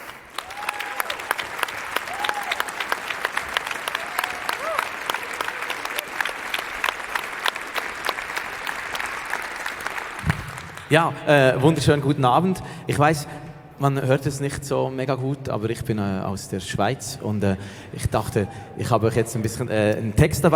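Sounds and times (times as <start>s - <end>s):
audience applause for a poetry slammer: 0.0s - 11.0s
speech: 10.9s - 20.5s.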